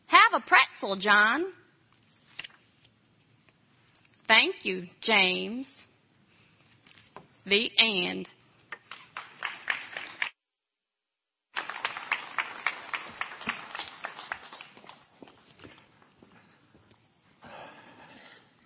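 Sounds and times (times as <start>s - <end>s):
speech: 0.4s - 1.6s, 4.3s - 5.8s, 7.4s - 8.4s
audience clapping: 8.8s - 10.3s, 11.5s - 16.2s.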